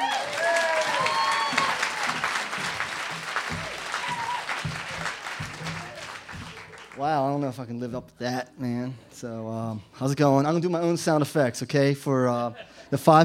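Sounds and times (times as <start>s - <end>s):
audience applause welcoming a comedian to the stage: 0.0s - 7.1s
voices and cheers: 0.0s - 7.1s
speech: 7.0s - 13.2s.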